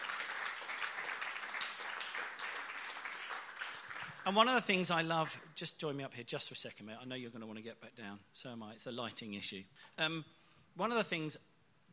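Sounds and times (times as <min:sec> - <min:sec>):
audience applause: 0:00.0 - 0:04.6
speech: 0:04.2 - 0:11.5.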